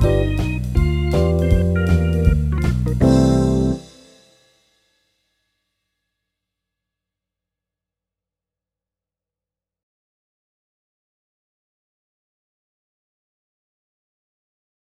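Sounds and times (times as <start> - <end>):
MIDI blues music: 0.0 - 4.0.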